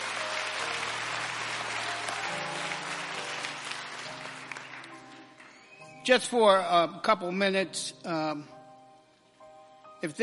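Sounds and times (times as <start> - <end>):
audience hand clapping for choir: 0.0 - 6.0
speech: 6.1 - 8.6, 10.0 - 10.2.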